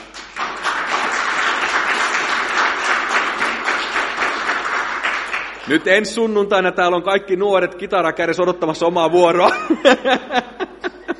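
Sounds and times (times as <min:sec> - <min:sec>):
audience applause: 0:00.0 - 0:05.9
speech: 0:05.7 - 0:10.7
laughter: 0:09.4 - 0:11.1.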